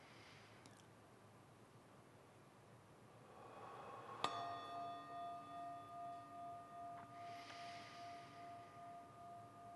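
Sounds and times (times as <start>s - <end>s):
meditation chime ringing: 3.4s - 9.7s.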